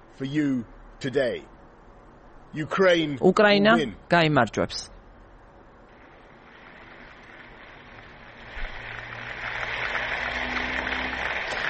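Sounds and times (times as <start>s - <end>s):
speech: 0.2s - 1.6s, 2.5s - 4.9s
audience applause and standing ovation for a representative speaking about Ukraine: 7.8s - 11.6s.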